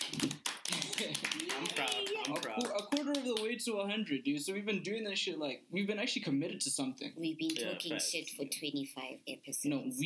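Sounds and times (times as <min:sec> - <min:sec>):
small group clapping hands: 0:00.0 - 0:03.6
speech: 0:01.0 - 0:10.0.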